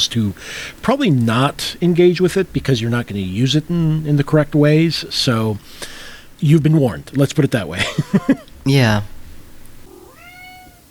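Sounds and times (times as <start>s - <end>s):
speech: 0.0s - 9.1s
laughter: 6.5s - 8.6s
cat meowing: 9.8s - 10.8s.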